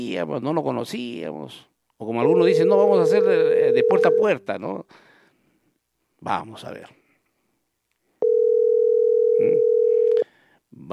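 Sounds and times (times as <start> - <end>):
speech: 0.0 - 5.1, 6.2 - 7.0, 10.8 - 10.9
telephone ringing unanswered on a phone line: 2.3 - 4.4, 8.2 - 10.2.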